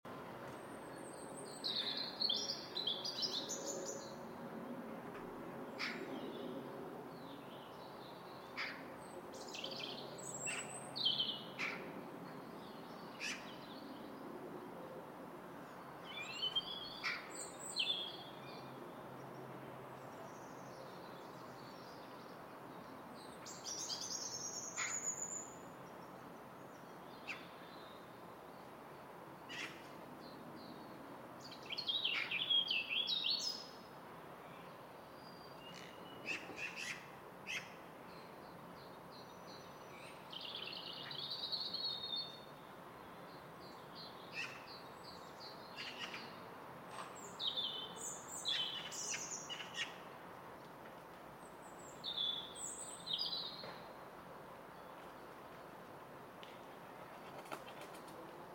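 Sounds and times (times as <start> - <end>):
birds on a Friday afternoon: 0.4 - 15.0, 15.6 - 58.5.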